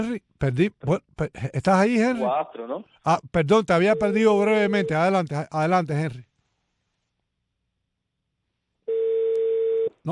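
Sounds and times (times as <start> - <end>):
speech: 0.0 - 6.3
phone line ringing tone after dropped call: 8.9 - 9.9.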